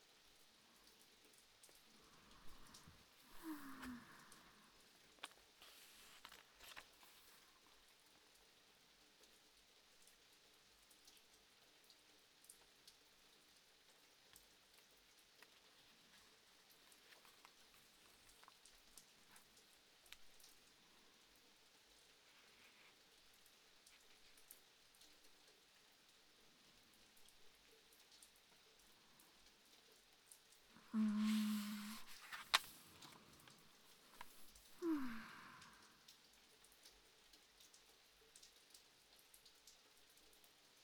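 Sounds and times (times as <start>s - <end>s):
rain: 0.0s - 40.8s
person reading a book: 1.7s - 7.8s, 15.3s - 20.4s, 30.7s - 35.8s.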